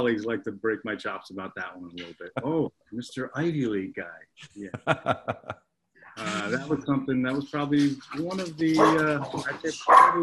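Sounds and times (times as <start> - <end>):
speech: 0.0 - 5.6, 6.2 - 10.2
laughter: 4.6 - 5.6
dogs barking and yipping: 8.8 - 9.2, 9.8 - 10.2.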